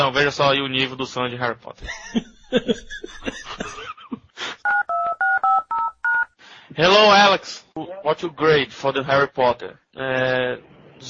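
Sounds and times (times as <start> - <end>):
speech: 0.0 - 3.8, 6.8 - 11.0
laughter: 1.8 - 4.3
touch-tone telephone dialing beeps: 4.6 - 6.3.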